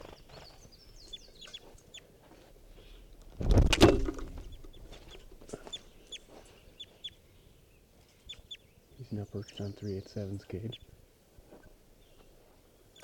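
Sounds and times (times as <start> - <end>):
wild bird clucking and chirping: 1.0 - 2.1, 4.1 - 7.2, 8.1 - 10.9
speech: 9.2 - 10.9.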